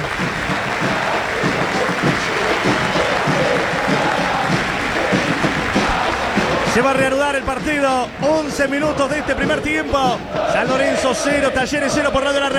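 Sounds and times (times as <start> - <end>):
stadium crowd and players applauding: 0.0 - 12.5
speech: 6.8 - 12.5.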